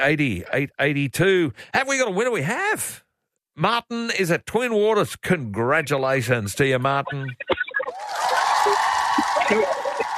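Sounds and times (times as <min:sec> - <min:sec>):
speech: 0:00.0 - 0:03.0, 0:03.6 - 0:07.5, 0:09.5 - 0:09.8
laughter: 0:07.1 - 0:10.1
crowd cheering wildly: 0:07.9 - 0:10.1.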